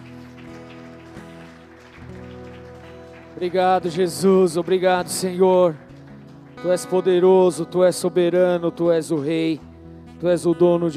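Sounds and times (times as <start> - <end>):
audience applauding: 0.0 - 7.6
sustained held keyboard chords: 0.0 - 10.9
speech: 3.4 - 5.8, 6.6 - 10.9.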